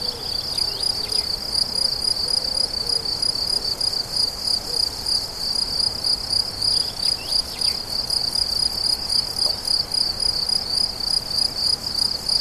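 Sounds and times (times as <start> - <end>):
crickets singing: 0.0 - 12.3.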